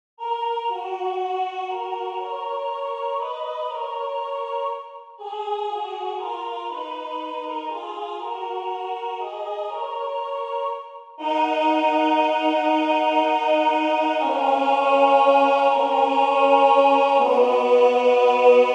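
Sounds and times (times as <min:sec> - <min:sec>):
tenor singing: 0:00.2 - 0:18.7.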